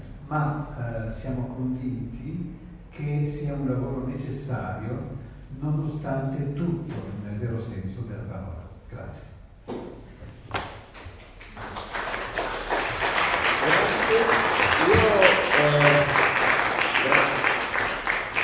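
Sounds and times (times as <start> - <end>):
speech: 0.3 - 9.8
audience applause: 11.4 - 18.4.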